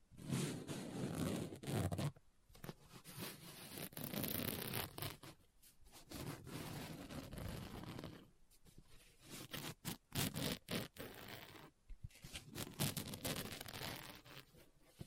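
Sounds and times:
fingers scratching on a book: 0.2s - 5.4s, 6.0s - 8.3s, 9.2s - 14.6s.

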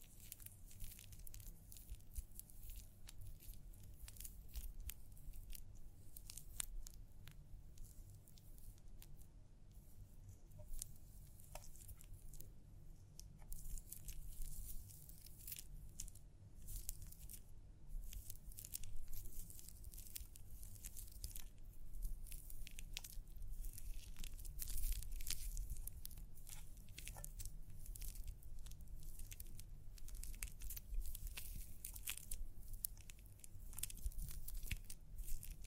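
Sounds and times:
scalp massage rubbing and scratching during a hair wash: 0.0s - 9.2s, 9.8s - 17.4s, 18.0s - 35.6s
sharp bright crinkles: 0.0s - 35.6s.

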